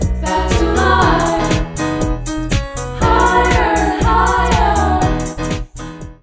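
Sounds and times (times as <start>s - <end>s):
karaoke singing: 0.2s - 2.2s, 3.0s - 5.7s.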